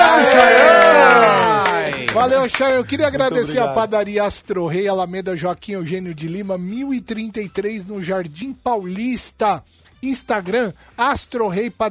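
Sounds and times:
crowd cheering and whooping: 0.0s - 2.5s
clapping: 0.0s - 3.3s
speech: 2.2s - 11.8s.

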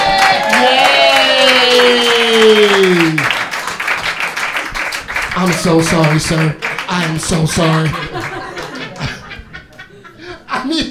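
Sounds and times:
long falling tonal whoop: 0.0s - 3.2s
audience applause for a volunteer on stage: 0.0s - 9.3s
speech: 5.6s - 8.0s
laughter: 7.3s - 10.8s.

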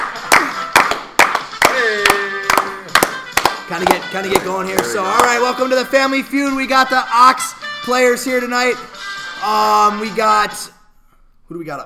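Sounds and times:
audience clapping along: 0.0s - 5.6s
speech: 3.7s - 10.7s, 11.5s - 11.8s.

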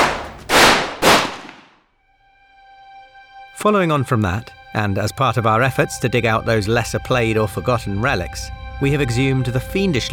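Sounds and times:
gunshot sound effects: 0.0s - 1.8s
speech: 3.6s - 10.1s.

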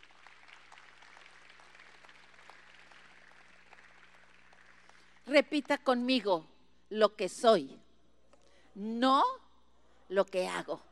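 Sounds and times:
crowd applause: 0.0s - 5.2s
speech: 5.3s - 7.8s, 8.8s - 9.4s, 10.1s - 10.9s.

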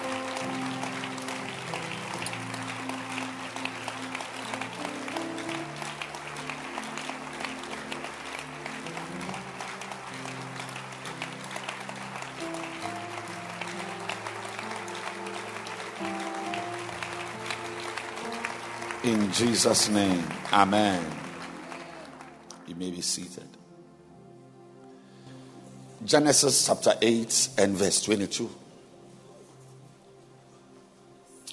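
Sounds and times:
crowd clapping steadily: 0.0s - 23.3s
speech: 19.1s - 21.2s, 22.8s - 23.6s, 26.0s - 28.6s.

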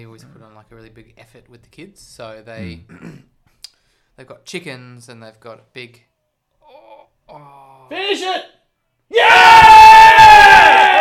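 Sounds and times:
speech: 0.0s - 3.3s, 4.2s - 6.1s, 7.3s - 9.5s
stadium crowd cheering a goal on TV: 9.2s - 10.9s.

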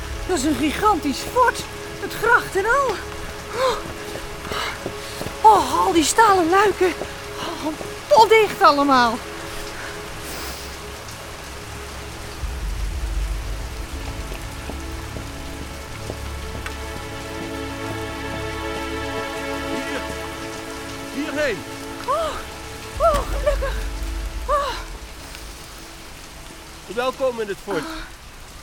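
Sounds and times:
low rumble: 0.0s - 4.4s, 11.0s - 18.4s, 22.0s - 26.9s
sudden heavy rainstorm: 0.0s - 28.6s
speech: 0.3s - 4.7s, 5.5s - 9.3s, 27.0s - 28.1s.

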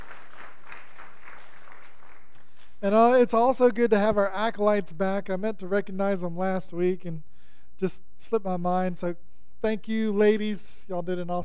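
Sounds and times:
congregation applauding a church choir: 0.0s - 2.8s
speech: 2.8s - 11.4s.

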